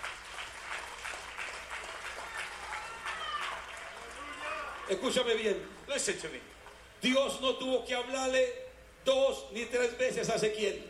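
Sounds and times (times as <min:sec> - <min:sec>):
audience applauding: 0:00.0 - 0:05.9
speech: 0:04.9 - 0:10.8.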